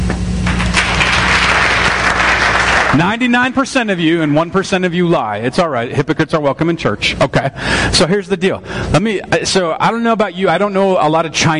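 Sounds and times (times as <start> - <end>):
crowd applause: 0.4 - 4.7
speech: 3.0 - 11.5.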